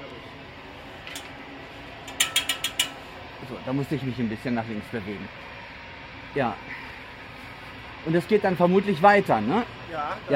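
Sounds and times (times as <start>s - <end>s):
knocking on metal turbine blades: 2.1s - 3.0s
speech: 3.4s - 5.5s, 6.3s - 6.8s, 8.0s - 10.3s.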